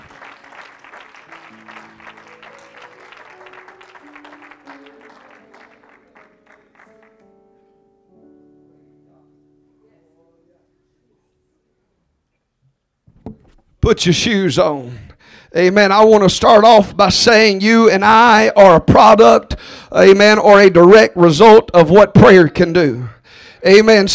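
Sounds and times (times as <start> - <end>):
crowd clapping hands loudly: 0.0 - 7.4
speech: 13.9 - 24.1.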